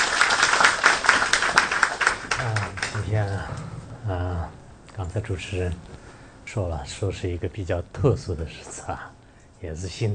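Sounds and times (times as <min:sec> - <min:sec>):
audience applause: 0:00.0 - 0:03.6
speech: 0:03.0 - 0:10.1.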